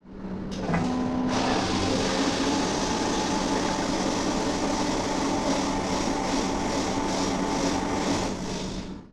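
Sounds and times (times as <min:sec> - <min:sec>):
large blender blending: 0:00.7 - 0:08.9.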